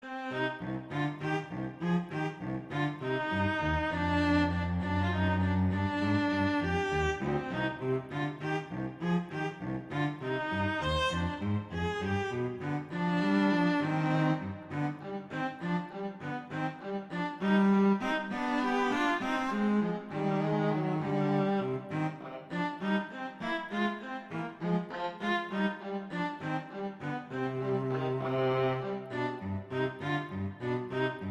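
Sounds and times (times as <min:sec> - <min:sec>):
violin playing a slow andante: 0:00.0 - 0:31.2.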